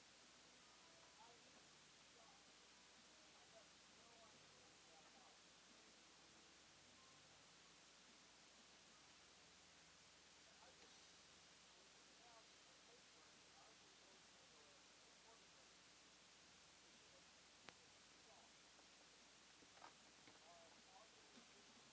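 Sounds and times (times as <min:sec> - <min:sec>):
background noise mix: 0:00.0 - 0:21.9.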